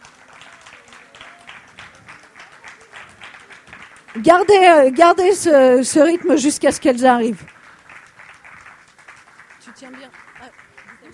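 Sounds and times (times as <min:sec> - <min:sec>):
audience applause: 0:00.0 - 0:11.1
speech: 0:04.2 - 0:07.5.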